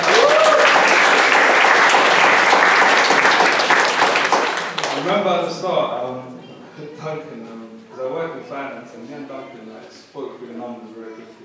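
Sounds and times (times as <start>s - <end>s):
audience applause: 0.0s - 5.2s
speech: 5.2s - 11.4s.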